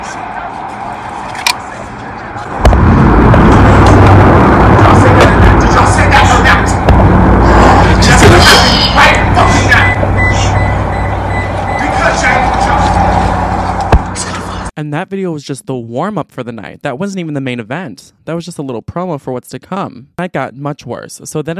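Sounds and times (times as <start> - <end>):
indistinct voices: 0.0 - 14.7
street traffic roar with cars passing: 0.0 - 14.7
speech: 14.8 - 21.5.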